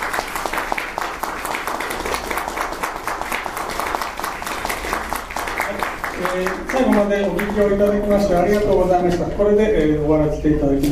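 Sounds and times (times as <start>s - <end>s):
audience applause: 0.0s - 8.0s
speech: 6.4s - 10.8s.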